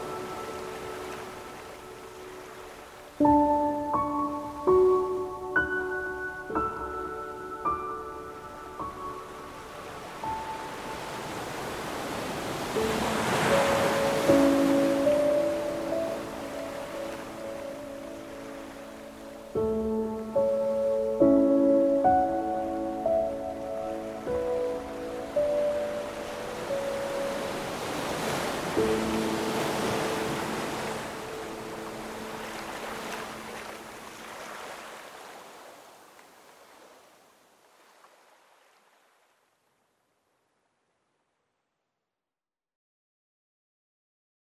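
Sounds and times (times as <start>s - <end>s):
piano: 0.0s - 34.5s
ocean waves: 0.0s - 39.9s.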